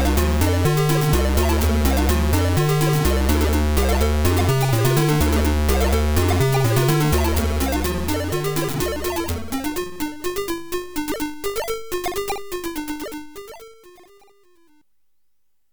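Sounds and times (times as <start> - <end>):
YM2149 sound chip electro music: 0.0 - 14.8.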